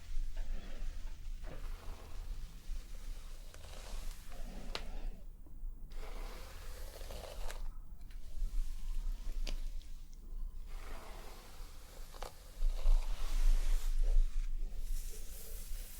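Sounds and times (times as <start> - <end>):
hair brushing: 0.0 - 5.0, 5.9 - 7.7, 10.7 - 15.9
scalp treatment massage: 0.0 - 5.2, 5.9 - 15.9.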